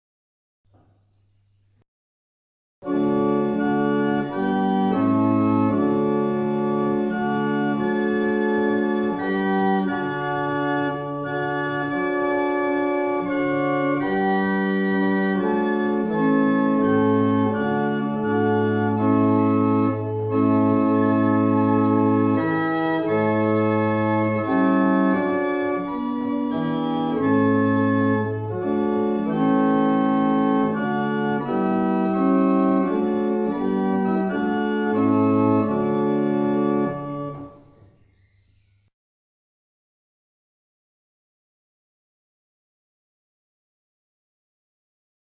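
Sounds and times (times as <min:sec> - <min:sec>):
barrel organs playing: 0:02.8 - 0:37.9.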